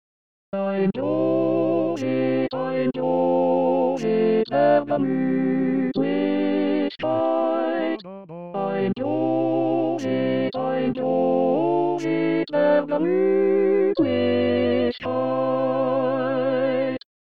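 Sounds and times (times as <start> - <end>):
barbershop lead singing: 0.5 - 17.0.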